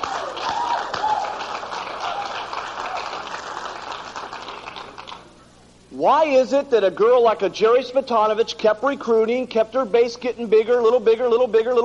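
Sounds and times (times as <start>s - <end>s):
audience clapping: 0.0s - 5.3s
speech: 6.0s - 11.8s.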